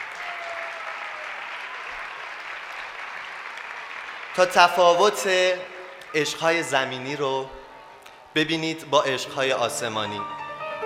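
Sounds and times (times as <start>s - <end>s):
audience applause at a live performance honouring a performer and his teacher: 0.0s - 6.0s
speech: 4.4s - 7.6s, 8.4s - 10.4s.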